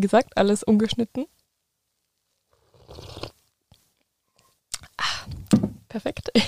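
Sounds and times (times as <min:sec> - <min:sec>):
speech: 0:00.0 - 0:01.4, 0:06.0 - 0:06.4
sip of hot coffee slurp: 0:02.6 - 0:03.4.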